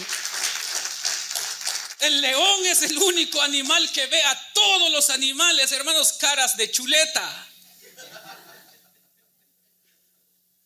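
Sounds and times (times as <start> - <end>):
audience applauding: 0.0 - 2.1
speech: 2.0 - 7.5
laughter: 7.8 - 9.3.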